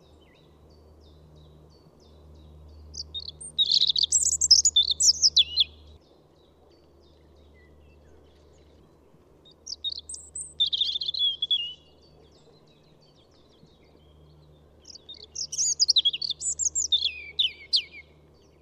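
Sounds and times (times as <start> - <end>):
European robin song: 2.7 - 5.9, 9.6 - 12.1, 14.8 - 18.2.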